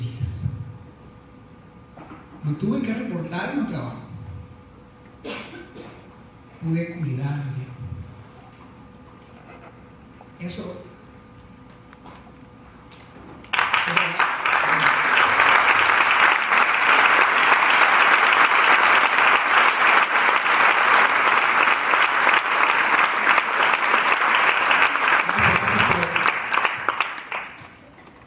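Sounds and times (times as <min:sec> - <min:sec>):
speech: 0:02.5 - 0:04.1, 0:06.6 - 0:07.7, 0:10.4 - 0:10.8
audience applause: 0:13.5 - 0:28.2.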